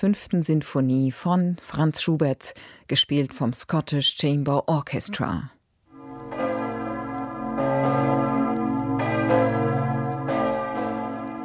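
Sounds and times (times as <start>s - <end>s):
speech: 0.0s - 5.6s
bells of Kloster Ettal ringing: 5.9s - 11.4s.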